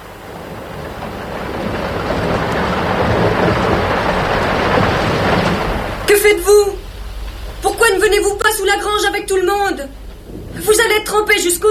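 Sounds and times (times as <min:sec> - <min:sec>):
heavy rain in a thunderstorm: 0:00.0 - 0:11.6
low thunder rumble: 0:00.0 - 0:11.6
speech: 0:08.0 - 0:10.0, 0:10.6 - 0:11.6.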